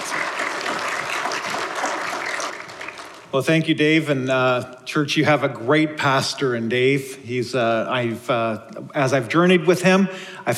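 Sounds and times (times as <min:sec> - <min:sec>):
church congregation applauding a guest speaker: 0:00.0 - 0:03.5
speech: 0:03.3 - 0:10.5.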